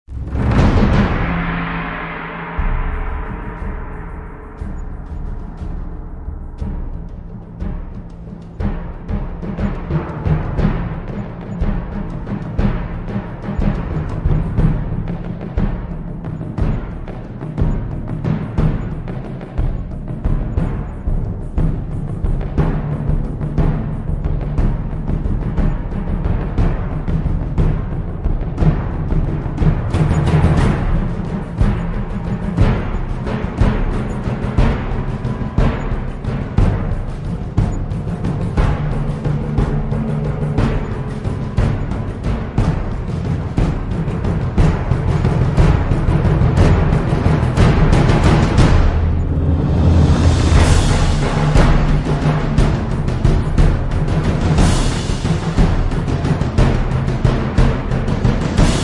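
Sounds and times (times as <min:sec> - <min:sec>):
drums: 0:00.0 - 0:58.8.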